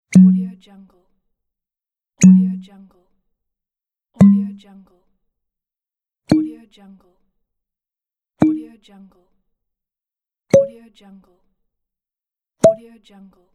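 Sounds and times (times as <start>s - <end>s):
glass bottle cork popping: 0.1s - 0.5s, 2.2s - 2.6s, 4.2s - 4.6s.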